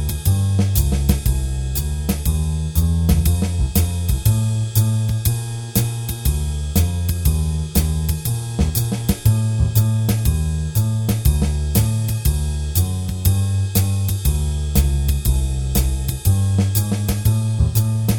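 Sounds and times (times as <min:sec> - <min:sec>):
bass drums: 0:00.0 - 0:18.1.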